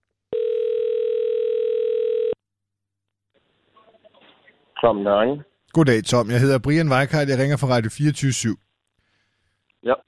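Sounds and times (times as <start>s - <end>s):
telephone ringing tone on outgoing call to an ambassador: 0.3s - 2.4s
speech: 4.8s - 8.6s, 9.8s - 10.0s.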